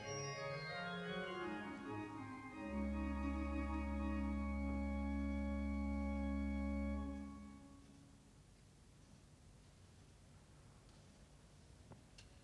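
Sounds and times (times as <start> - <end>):
organ sonata in D major: 0.0 - 7.9.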